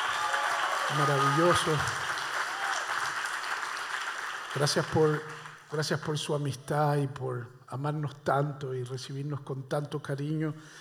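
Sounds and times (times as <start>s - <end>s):
audience applause for the pastors: 0.0s - 5.7s
speech: 0.9s - 2.0s, 4.5s - 10.7s.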